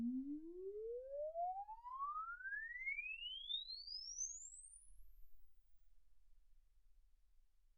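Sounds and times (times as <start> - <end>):
exponential sine sweep from 10 Hz to 24 kHz: 0.1 - 5.4.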